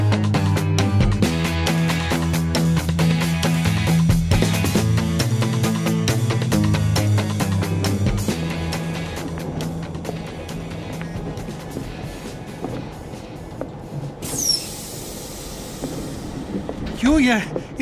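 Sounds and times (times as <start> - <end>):
train rolling along the rails: 0.4 - 17.8
high metallic squeal: 14.2 - 15.0
speech: 17.3 - 17.8.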